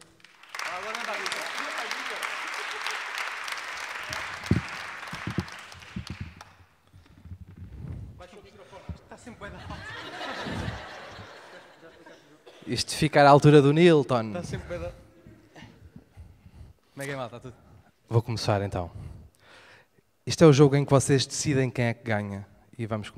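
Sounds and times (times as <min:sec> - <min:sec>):
audience applause from a live comedy game-show crowd: 0:00.0 - 0:07.1, 0:09.6 - 0:11.7
scattered voices and chuckles: 0:02.0 - 0:03.4, 0:09.2 - 0:12.5
speech: 0:12.7 - 0:15.0, 0:17.0 - 0:19.0, 0:20.3 - 0:23.1.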